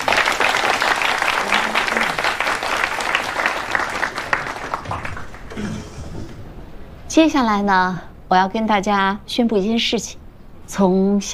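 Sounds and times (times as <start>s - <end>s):
warm audience applause: 0.0s - 6.4s
speech: 7.2s - 11.3s.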